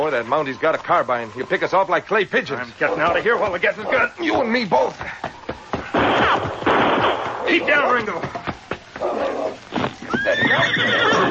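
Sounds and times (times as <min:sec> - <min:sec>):
speech: 0:00.0 - 0:05.3, 0:07.5 - 0:09.5, 0:10.2 - 0:11.2
horse hooves clopping and stamping: 0:00.0 - 0:11.2
horse whinnying: 0:09.0 - 0:11.2.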